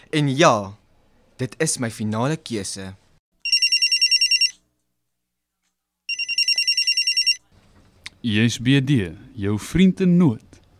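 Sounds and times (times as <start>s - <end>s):
speech: 0.1s - 0.8s, 1.4s - 3.0s, 8.2s - 10.6s
telephone ringing when calling a friend on the MTN network: 3.4s - 4.6s, 6.1s - 7.4s.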